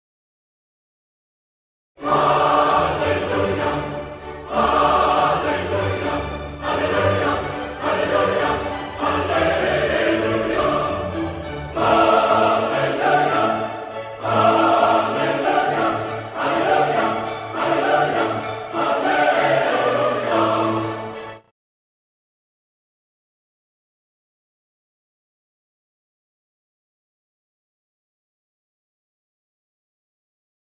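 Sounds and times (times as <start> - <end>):
choral ringtone: 2.0 - 21.4.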